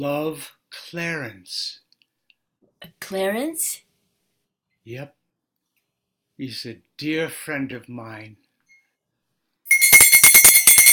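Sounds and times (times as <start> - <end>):
speech: 0.0 - 1.8, 2.8 - 3.8, 4.8 - 5.2, 6.4 - 8.4
small bell ringing: 9.7 - 10.9.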